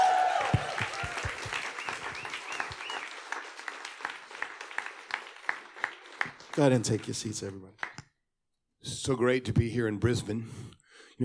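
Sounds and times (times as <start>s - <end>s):
audience applause welcoming a guest pastor at a church service: 0.0s - 8.0s
speech: 6.6s - 7.8s, 8.8s - 11.2s.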